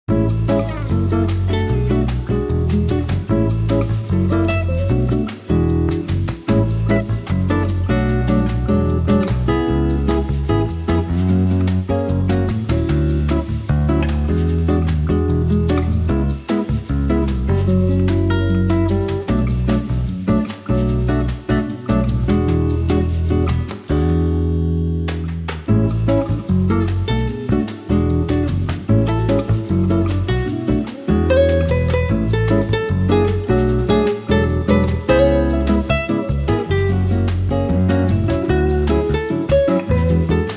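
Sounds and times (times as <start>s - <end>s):
bossa nova music: 0.0s - 40.5s.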